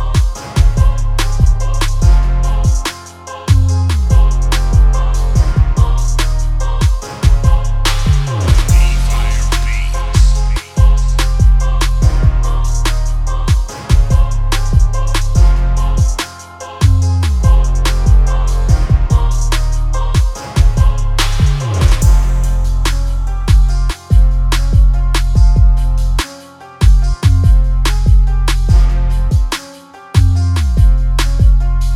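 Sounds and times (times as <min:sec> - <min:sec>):
beats at 144 bpm: 0:00.2 - 0:31.9.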